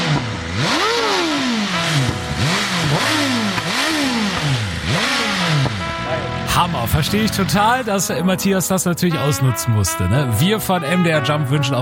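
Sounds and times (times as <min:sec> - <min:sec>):
motorcycle engine revving: 0:00.0 - 0:08.3
speech: 0:06.6 - 0:11.8.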